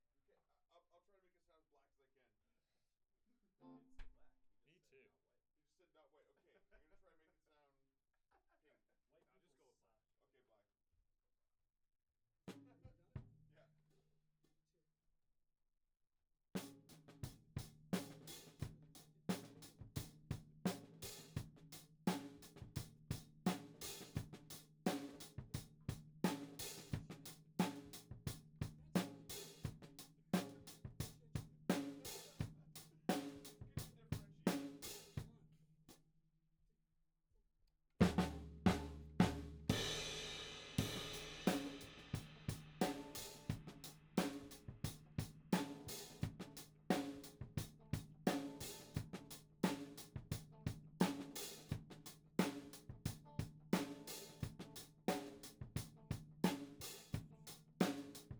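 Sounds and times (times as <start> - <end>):
tom drum: 16.6 - 35.3, 38.0 - 58.3.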